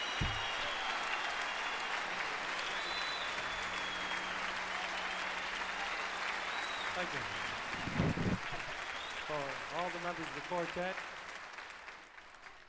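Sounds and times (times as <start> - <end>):
audience applause at a live jazz quartet concert: 0.0 - 12.6
low thump: 0.2 - 0.7
speech: 7.0 - 8.0, 9.3 - 11.1.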